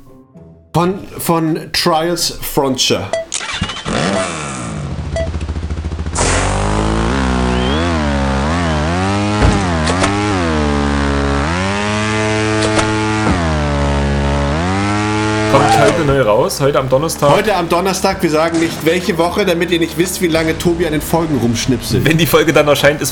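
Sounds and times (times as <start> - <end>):
speech: 0.8 - 3.2, 16.0 - 23.1
motorbike engine revving with a buzzy exhaust note: 3.4 - 16.3.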